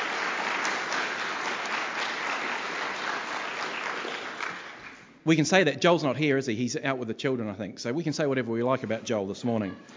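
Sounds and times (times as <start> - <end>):
crowd clapping: 0.0 - 5.2
speech: 5.2 - 9.9.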